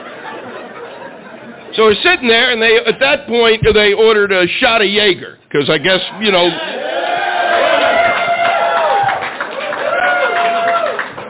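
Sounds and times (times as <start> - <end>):
laughter: 0.0 - 1.7
speech: 1.8 - 6.8
loud audience cheering and applauding: 6.2 - 11.2
whoops and shouting voices: 6.5 - 11.1.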